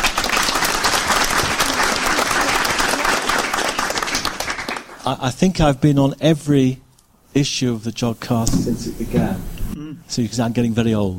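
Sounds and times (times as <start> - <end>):
studio audience applause: 0.0 - 5.0
speech: 5.1 - 11.1.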